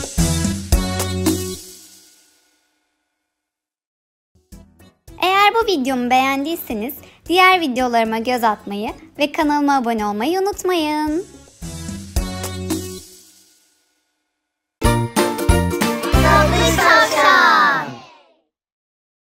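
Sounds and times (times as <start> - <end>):
fun children's rhyming song: 0.0 - 2.1, 5.1 - 13.4, 14.8 - 18.4.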